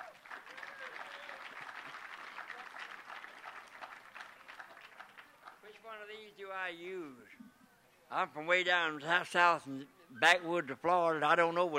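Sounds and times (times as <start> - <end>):
audience applause welcoming a speaker: 0.0 - 5.8
speech: 5.9 - 7.5, 8.1 - 11.7.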